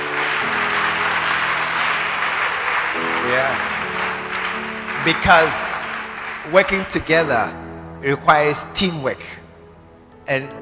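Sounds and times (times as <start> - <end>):
choir clapping: 0.0 - 7.7
speech: 3.3 - 3.8, 5.0 - 5.8, 6.4 - 9.4, 10.3 - 10.5.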